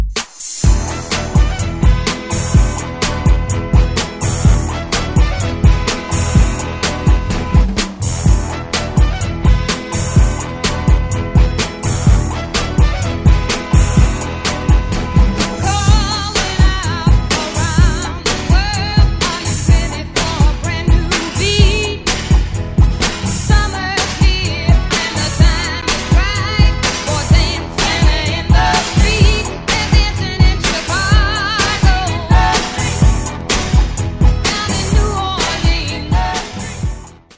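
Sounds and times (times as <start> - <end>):
1960s style music at 126 BPM: 0.2 - 37.3.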